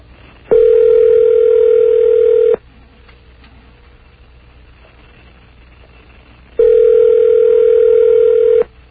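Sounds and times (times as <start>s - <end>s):
telephone ringback tone: 0.5s - 2.6s, 6.6s - 8.7s.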